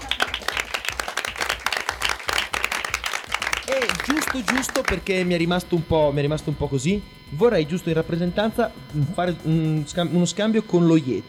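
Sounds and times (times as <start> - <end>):
applause: 0.0 - 5.1
speech: 3.7 - 11.2.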